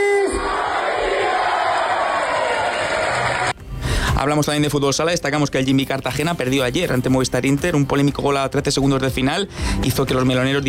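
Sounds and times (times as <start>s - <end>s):
football fans chanting and cheering in celebration of promotion: 0.2s - 3.6s
speech: 4.2s - 10.6s.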